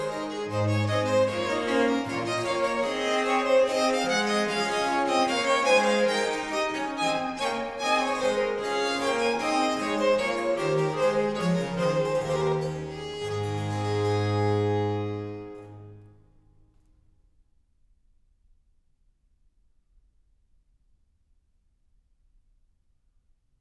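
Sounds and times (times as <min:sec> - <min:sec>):
trio sonata gavotte allegro: 0:00.0 - 0:16.2.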